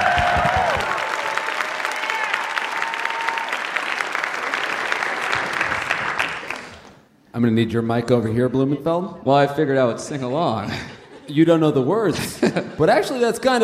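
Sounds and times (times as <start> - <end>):
audience applause: 0.0 - 6.9
speech: 7.4 - 13.6
laughter: 10.2 - 13.2.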